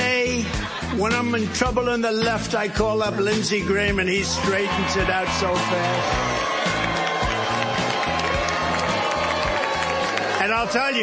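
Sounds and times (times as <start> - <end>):
laughter: 0.0 - 2.2
speech: 0.9 - 6.4, 10.5 - 11.0
large crowd booing at victory speech: 4.2 - 11.0.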